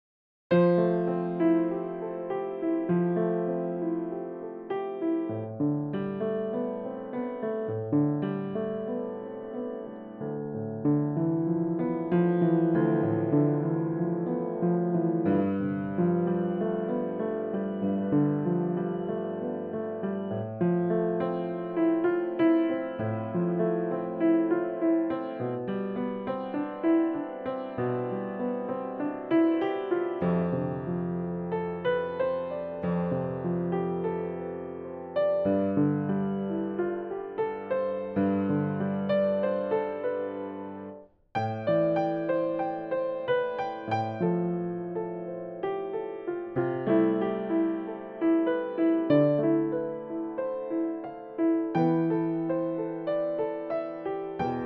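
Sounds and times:
piano improvisation: 0:00.5 - 0:54.6.

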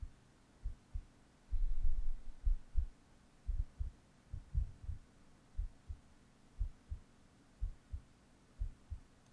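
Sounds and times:
heartbeat: 0:00.0 - 0:05.0, 0:05.6 - 0:06.0, 0:06.6 - 0:07.0, 0:07.6 - 0:08.0, 0:08.6 - 0:09.1.

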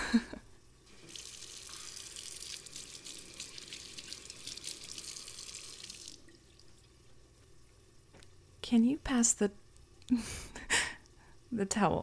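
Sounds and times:
speech: 0:00.1 - 0:00.3, 0:08.7 - 0:10.5, 0:11.5 - 0:12.0
tap running as someone washes their hands: 0:00.8 - 0:08.3.

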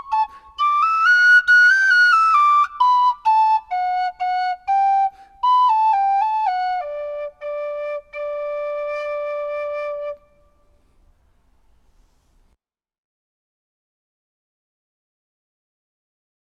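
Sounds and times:
tin whistle tune: 0:00.0 - 0:10.6.

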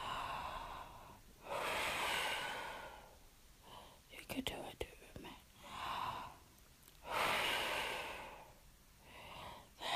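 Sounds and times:
deep breathing: 0:00.0 - 0:04.1, 0:07.0 - 0:09.8
speech: 0:04.3 - 0:04.8.

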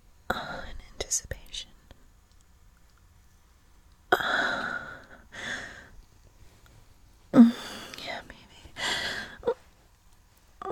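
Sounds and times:
speech: 0:01.1 - 0:01.7
heavy breathing: 0:04.2 - 0:06.0, 0:07.4 - 0:08.0, 0:08.6 - 0:09.6.

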